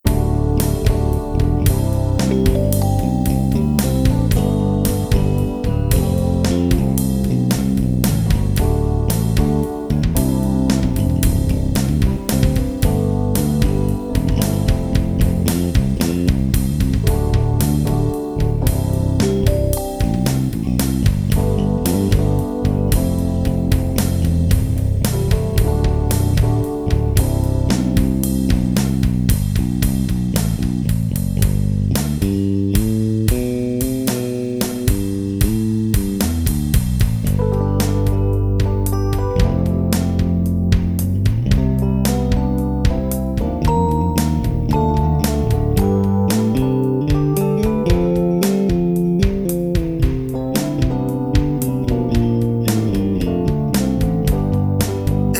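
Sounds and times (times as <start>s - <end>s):
keyboard bass: 0.0s - 55.3s.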